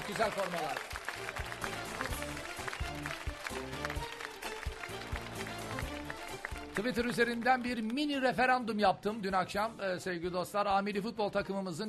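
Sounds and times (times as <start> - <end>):
applause, many hands clapping: 0.0 - 8.5
speech: 0.1 - 2.1, 6.8 - 11.8.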